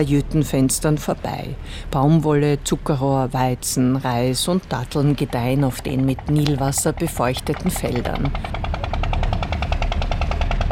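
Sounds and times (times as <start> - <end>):
speech: 0.0 - 8.8
low engine rumble: 0.0 - 10.6
motor-driven water pump rattling: 4.7 - 10.6.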